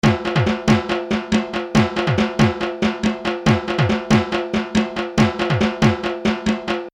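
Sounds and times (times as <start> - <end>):
dhaak drumming: 0.0 - 6.9.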